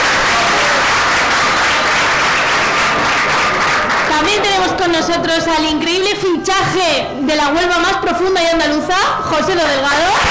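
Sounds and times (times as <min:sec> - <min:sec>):
audience applause: 0:00.0 - 0:04.8
speech: 0:04.9 - 0:10.2.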